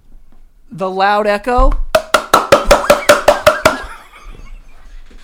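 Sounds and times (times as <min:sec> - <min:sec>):
speech: 0:00.7 - 0:01.8
fast hand clapping: 0:02.0 - 0:03.9.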